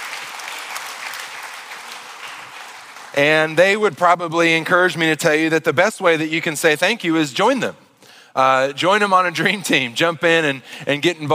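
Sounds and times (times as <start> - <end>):
audience clapping hands: 0.0 - 4.0
speech: 3.2 - 7.8, 8.4 - 11.3.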